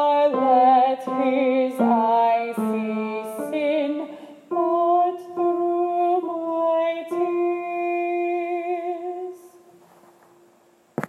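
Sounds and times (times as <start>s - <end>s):
alto voice singing a choir practice track: 0.0s - 9.6s.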